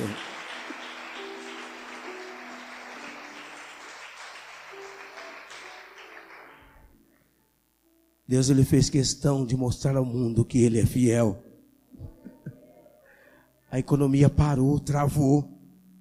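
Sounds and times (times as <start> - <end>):
audience applauding: 0.0 - 7.0
speech: 8.3 - 11.5, 13.7 - 15.5.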